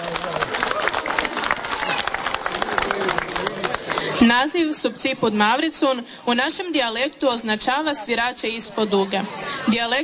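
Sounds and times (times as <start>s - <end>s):
audience clapping after a children's dance performance: 0.0s - 4.5s
steady crowd murmur and voices: 0.0s - 5.2s, 7.6s - 10.0s
speech: 4.2s - 10.0s.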